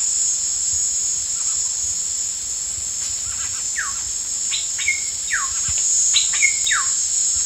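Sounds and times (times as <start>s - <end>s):
Ecuadorian cacique whistled calls: 3.4s - 7.1s.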